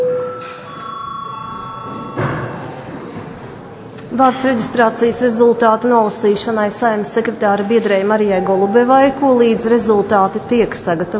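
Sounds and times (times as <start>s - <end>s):
parliament chamber bell ringing: 0.0s - 3.1s
speech: 4.2s - 11.1s.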